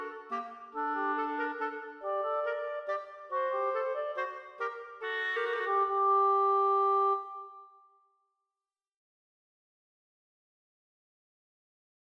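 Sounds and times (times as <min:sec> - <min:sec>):
clarinet duet playing a minuet: 0:00.0 - 0:07.7.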